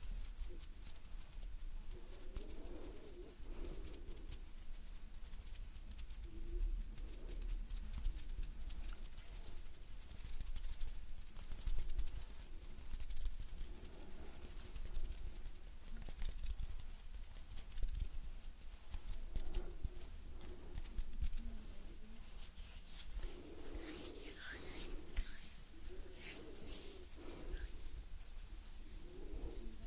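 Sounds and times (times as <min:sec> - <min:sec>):
brighter crisp rubbing and scratching: 0:00.0 - 0:29.8
gentle hand rustling and brushing: 0:00.0 - 0:29.8
low breathy pulses: 0:02.4 - 0:04.4, 0:13.6 - 0:16.3, 0:18.9 - 0:29.8.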